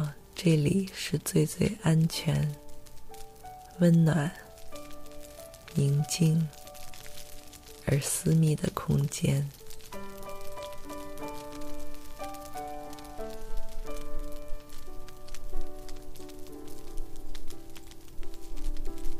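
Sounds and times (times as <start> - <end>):
fire crackling in a fireplace: 0.0 - 19.1
speech: 0.4 - 2.6, 3.8 - 4.4, 5.8 - 6.6, 7.9 - 9.6.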